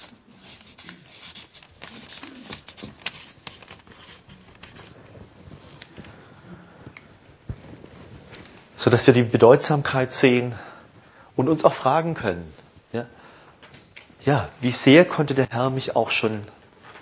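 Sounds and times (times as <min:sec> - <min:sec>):
pen scratching out words inside a drawn circle: 0:00.0 - 0:05.0
speech: 0:08.8 - 0:10.7, 0:11.4 - 0:13.2, 0:14.2 - 0:16.6.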